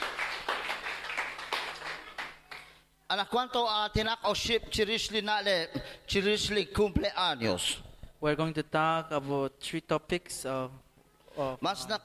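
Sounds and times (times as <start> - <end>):
audience applause: 0.0 - 2.7
speech: 3.1 - 10.8, 11.4 - 12.0.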